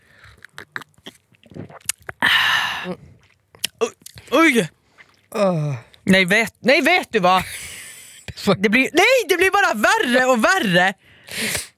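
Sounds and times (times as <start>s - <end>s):
chewing and mouth sounds tasting a pastel green food: 0.0s - 6.6s, 11.3s - 11.7s
speech: 2.8s - 3.1s, 3.8s - 7.6s, 8.4s - 11.7s.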